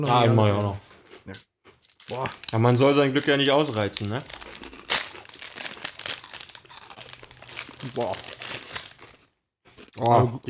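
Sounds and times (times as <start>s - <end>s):
speech: 0.0s - 1.5s, 2.1s - 4.7s, 7.8s - 8.3s, 10.0s - 10.4s
cookie wrapper crinkling: 1.8s - 9.3s.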